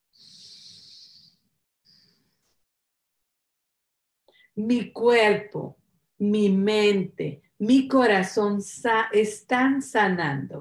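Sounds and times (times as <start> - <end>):
deep breathing during a guided meditation: 0.0 - 2.6
speech: 4.6 - 10.5.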